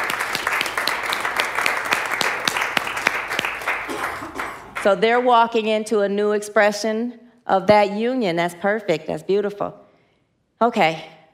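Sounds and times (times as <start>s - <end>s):
audience applause: 0.0s - 4.9s
speech: 4.8s - 9.8s, 10.6s - 11.1s.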